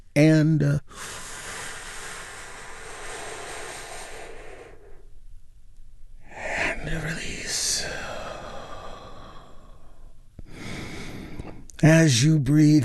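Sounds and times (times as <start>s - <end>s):
speech: 0.2s - 1.2s, 11.8s - 12.8s
slow deep breath during a guided relaxation exercise: 0.9s - 5.2s, 7.7s - 11.7s.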